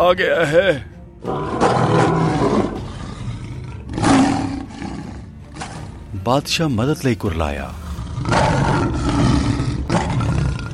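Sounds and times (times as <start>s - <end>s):
speech: 0.0s - 2.6s, 6.2s - 9.0s
lion roaring, story sound effect: 1.2s - 6.0s, 7.8s - 10.7s.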